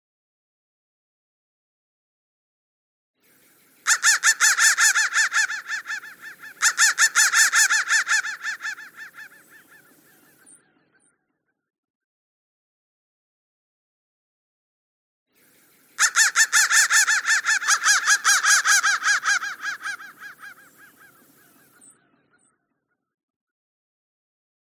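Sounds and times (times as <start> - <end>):
crow cawing: 3.8 - 10.4, 16.0 - 21.9.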